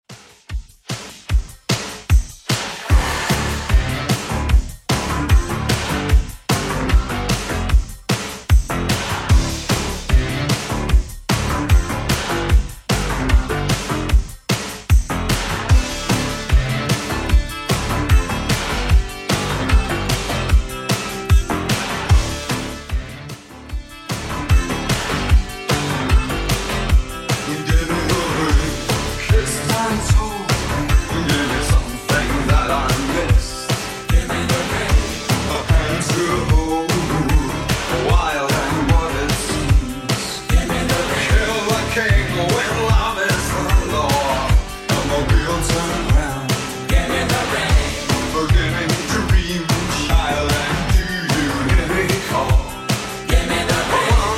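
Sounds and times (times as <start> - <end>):
1980s-style music: 0.1 - 54.3.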